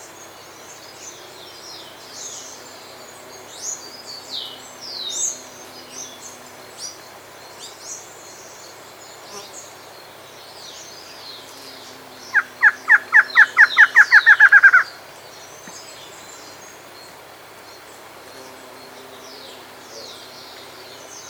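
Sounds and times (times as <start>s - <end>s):
bird downslurred calls: 12.3s - 15.0s.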